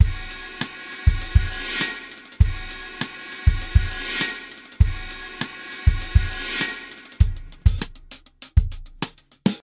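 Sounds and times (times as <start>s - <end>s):
reversed riddim beat: 0.0s - 9.5s.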